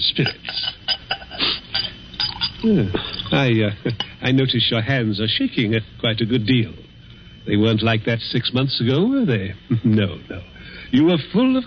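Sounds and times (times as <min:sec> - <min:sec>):
speech: 0:00.0 - 0:00.6, 0:02.6 - 0:06.8, 0:07.4 - 0:11.6
glassware clinking: 0:00.2 - 0:04.2.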